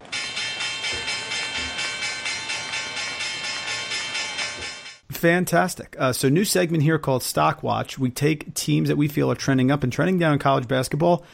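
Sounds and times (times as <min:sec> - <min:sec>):
stock market closing bell: 0:00.0 - 0:05.0
speech: 0:05.2 - 0:11.3.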